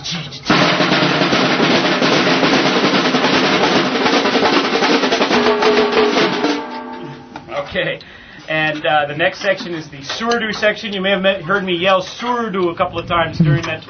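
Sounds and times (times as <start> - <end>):
speech: 0.1 - 0.4, 7.7 - 13.8
caixa snare drums playing fast samba: 0.5 - 7.4.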